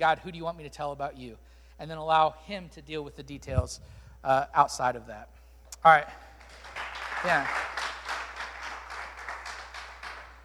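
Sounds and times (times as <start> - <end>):
speech: 0.0 - 6.2, 7.2 - 7.9
audience clapping: 6.4 - 10.4.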